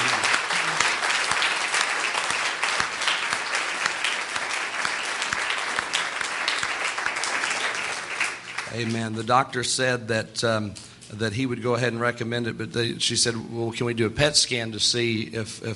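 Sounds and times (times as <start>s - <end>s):
people clapping: 0.0s - 9.2s
speech: 8.8s - 15.7s.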